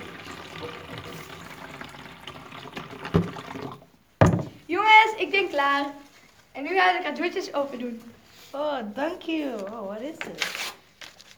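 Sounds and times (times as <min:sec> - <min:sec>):
tap water running into sink: 0:00.0 - 0:04.6
crockery knock: 0:04.2 - 0:04.6
speech: 0:05.2 - 0:06.0, 0:06.6 - 0:10.6.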